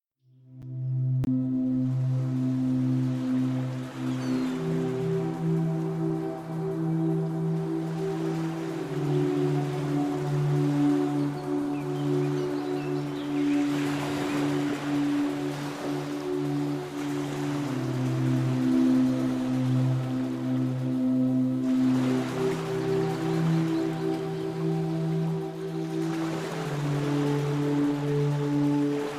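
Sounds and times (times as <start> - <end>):
background music: 0.4 - 29.1.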